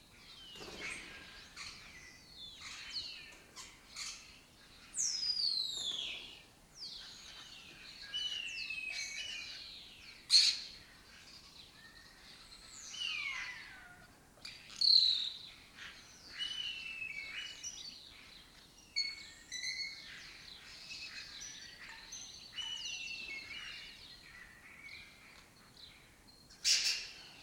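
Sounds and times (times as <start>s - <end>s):
other birds thin whistled and chirping notes: 0.4s - 27.4s.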